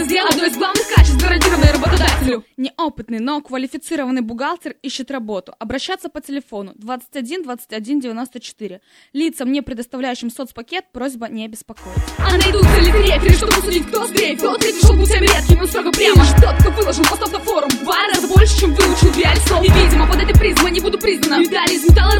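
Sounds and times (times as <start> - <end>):
women rapping in a rap battle: 0.0 - 2.5, 11.9 - 22.1.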